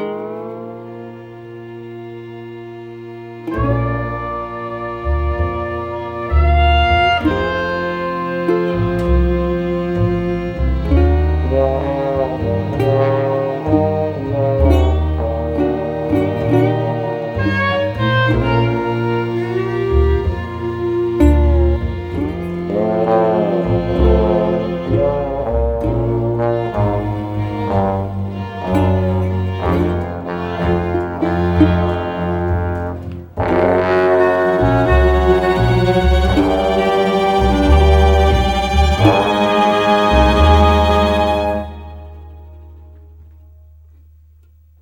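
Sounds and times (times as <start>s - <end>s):
bordello swing music: 0.1s - 44.0s.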